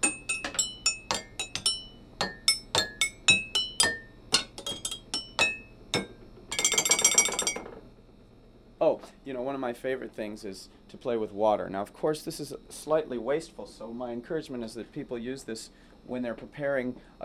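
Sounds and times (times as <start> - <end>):
mugs struck like a xylophone: 0.0 - 7.7
speech: 9.3 - 17.2.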